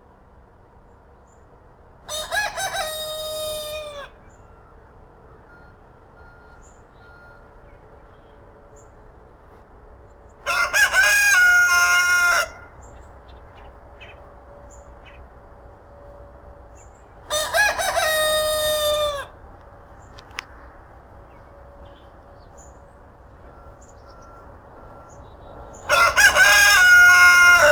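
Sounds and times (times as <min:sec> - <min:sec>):
rooster crowing: 0:02.1 - 0:04.6, 0:10.4 - 0:13.1, 0:17.2 - 0:19.4, 0:23.4 - 0:27.7.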